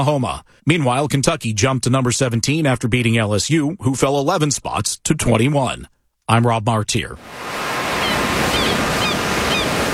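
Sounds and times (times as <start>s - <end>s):
speech: 0.0s - 7.7s
ocean waves breaking along the California coast: 7.2s - 9.9s.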